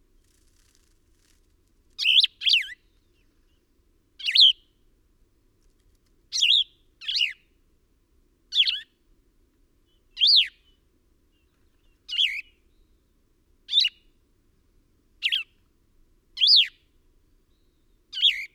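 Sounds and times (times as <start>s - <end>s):
bird chirping: 2.0s - 3.6s, 4.2s - 4.6s, 6.3s - 7.4s, 8.5s - 8.8s, 9.9s - 10.8s, 11.4s - 13.0s, 15.2s - 15.6s, 16.4s - 16.8s, 17.5s - 18.5s.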